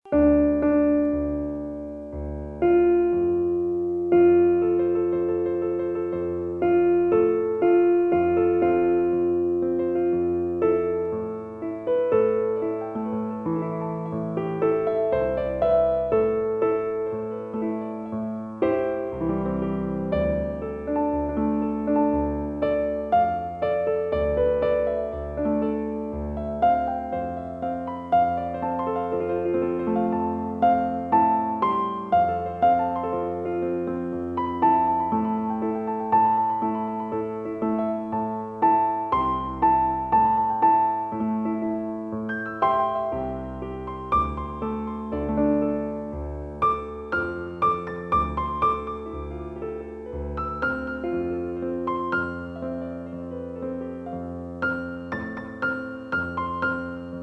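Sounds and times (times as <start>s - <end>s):
piano: 0.0s - 57.2s.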